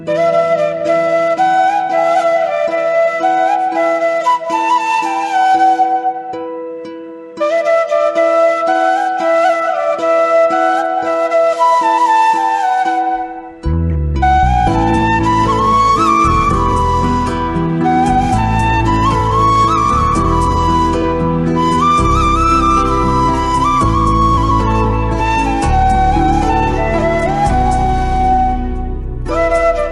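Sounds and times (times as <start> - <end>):
flute: 0.0 - 29.8.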